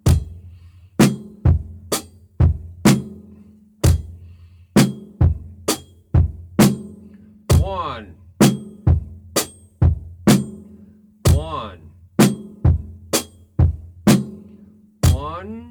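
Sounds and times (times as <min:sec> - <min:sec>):
drum beat: 0:00.0 - 0:14.4, 0:15.0 - 0:15.6
rhythm syllables spoken: 0:07.5 - 0:08.2, 0:11.3 - 0:11.9, 0:15.0 - 0:15.6.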